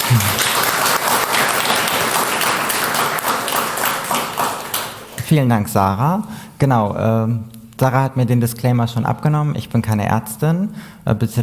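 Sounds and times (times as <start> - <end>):
audience applause: 0.0 - 5.3
speech: 0.1 - 0.4, 5.3 - 11.4.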